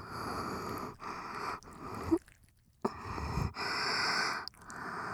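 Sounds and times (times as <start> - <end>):
hard ear licking: 0.9 - 4.9.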